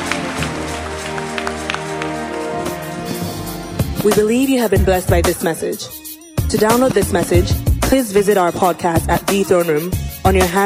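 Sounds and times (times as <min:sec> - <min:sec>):
audience clapping: 0:00.0 - 0:03.4
speech: 0:04.0 - 0:10.6.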